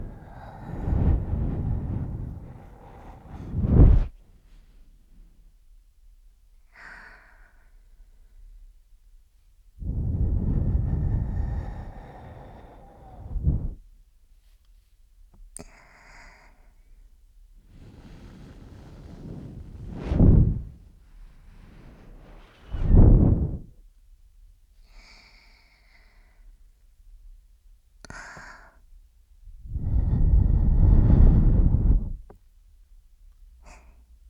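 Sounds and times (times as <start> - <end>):
ASMR breath blowing into ear: 0.0 - 4.1, 9.8 - 13.8, 17.7 - 23.7, 29.5 - 32.3.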